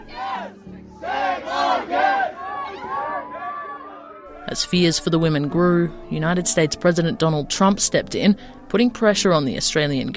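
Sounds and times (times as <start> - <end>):
large crowd shouting in unison: 0.0 - 5.6
speech: 4.5 - 10.1.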